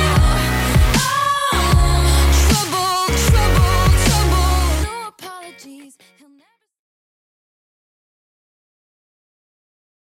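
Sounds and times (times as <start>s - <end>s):
drum loop at 77 bpm: 0.0s - 4.6s.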